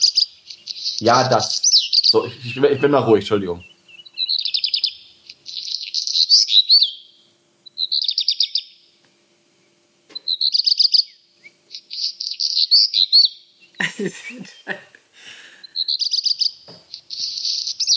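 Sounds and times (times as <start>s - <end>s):
black redstart singing: 0.0s - 17.9s
speech: 1.0s - 3.7s, 14.0s - 14.9s
laughter: 13.8s - 15.5s.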